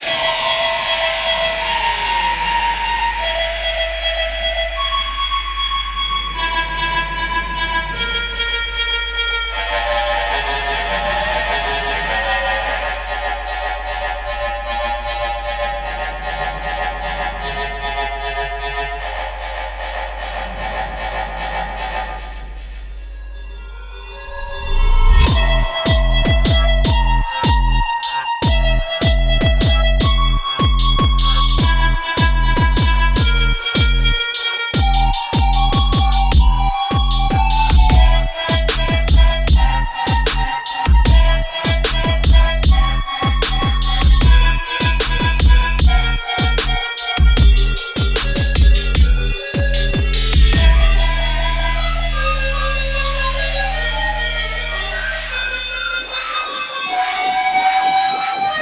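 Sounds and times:
remix music: 0.0s - 58.6s.

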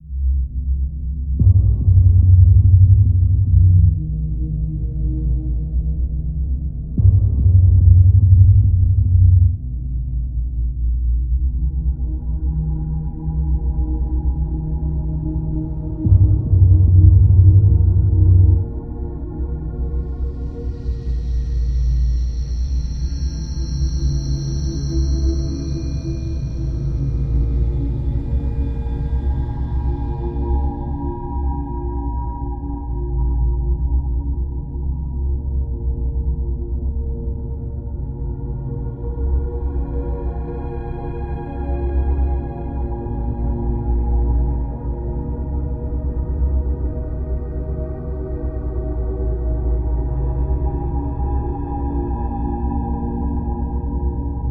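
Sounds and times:
ambient scene: 1.4s - 54.4s.

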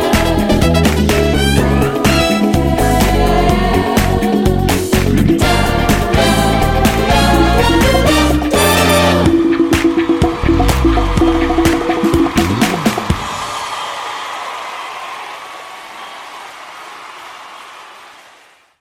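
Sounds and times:
disco song: 0.0s - 13.6s.

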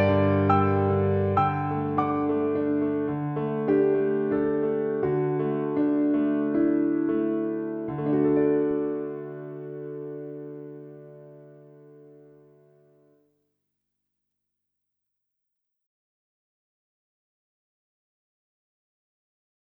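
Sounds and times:
piano piece: 0.0s - 13.1s.

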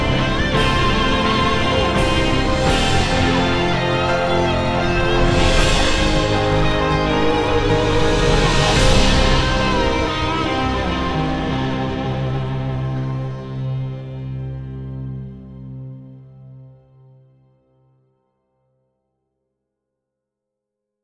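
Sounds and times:
dark music with full guitars: 0.0s - 16.5s.

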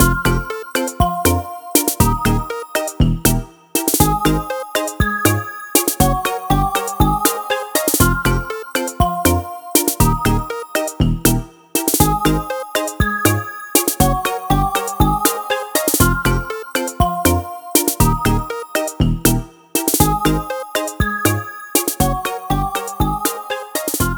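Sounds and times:
toy draw result background music: 0.0s - 24.1s.

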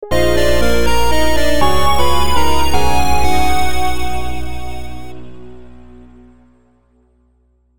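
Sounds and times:
orb discovery jingle: 0.0s - 5.3s.

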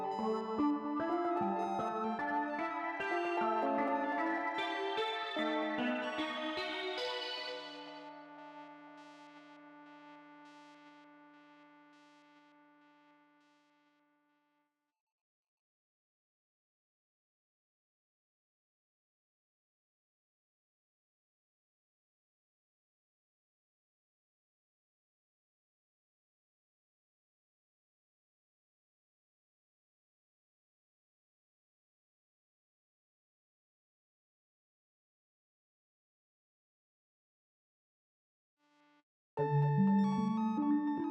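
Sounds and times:
synths: 0.0s - 13.2s, 39.4s - 41.0s.

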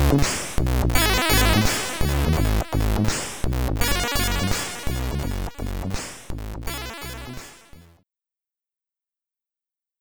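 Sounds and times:
SID chiptune music, stereo: 0.0s - 7.9s.

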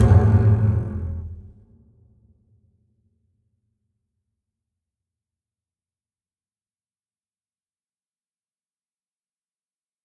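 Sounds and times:
musical stingers: 0.0s - 1.6s.

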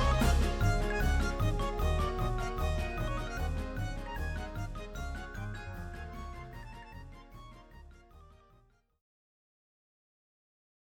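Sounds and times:
xylophone: 0.0s - 7.0s.

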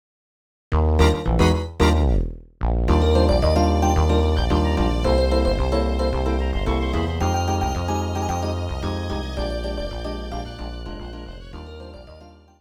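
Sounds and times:
background music from a beat machine: 1.0s - 2.3s, 2.9s - 10.8s.

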